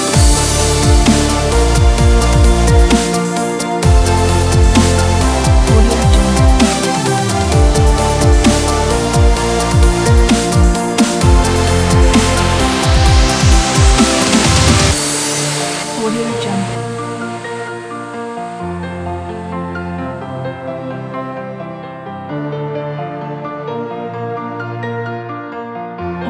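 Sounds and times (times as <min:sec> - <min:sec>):
melodic inspirational dubstep music: 0:00.0 - 0:18.8.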